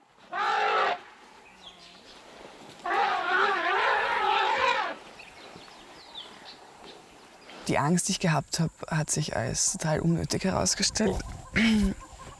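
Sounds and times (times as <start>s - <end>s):
elephants calling in the early morning: 0.3s - 1.0s, 2.8s - 5.0s
speech: 7.7s - 12.0s.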